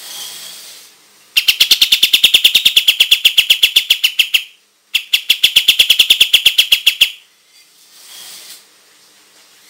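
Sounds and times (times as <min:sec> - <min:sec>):
white-shouldered triller calling: 0:01.4 - 0:07.3.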